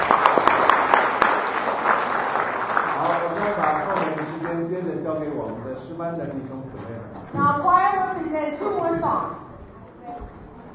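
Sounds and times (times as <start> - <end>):
church congregation applause welcoming people: 0.0 - 5.0
speech: 5.5 - 9.5.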